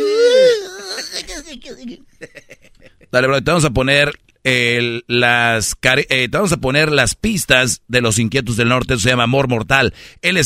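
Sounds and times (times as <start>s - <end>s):
man fake crying on request: 0.0s - 3.2s
speech: 1.6s - 2.5s, 3.1s - 10.4s.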